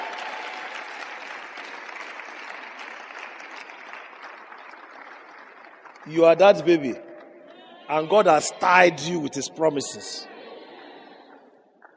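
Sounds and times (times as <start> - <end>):
audience applause: 0.0 - 9.2
speech: 6.0 - 7.0, 7.9 - 10.3.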